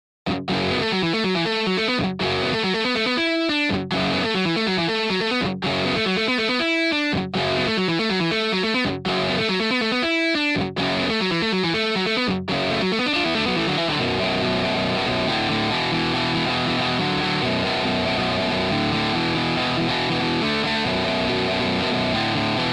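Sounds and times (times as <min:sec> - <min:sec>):
Rickenbacker guitar: 0:00.3 - 0:22.7.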